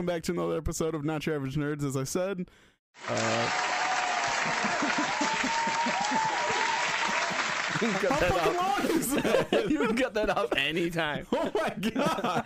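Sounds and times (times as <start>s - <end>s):
speech: 0.0s - 3.8s, 4.4s - 6.8s, 7.8s - 12.4s
crowd clapping: 3.0s - 9.0s
laughter: 3.1s - 12.4s.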